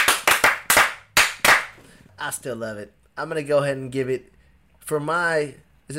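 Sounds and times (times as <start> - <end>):
hand clapping: 0.0 - 1.8
speech: 2.2 - 5.9.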